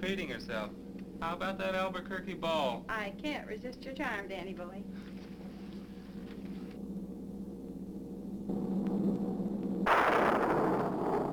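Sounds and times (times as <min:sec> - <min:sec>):
speech: 0:00.0 - 0:05.1
blast of thunder: 0:08.5 - 0:11.3.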